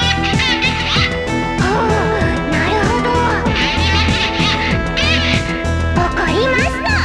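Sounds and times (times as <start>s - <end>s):
synthesized dhole call: 0.0s - 1.6s, 3.2s - 5.8s
laughter: 0.0s - 6.9s.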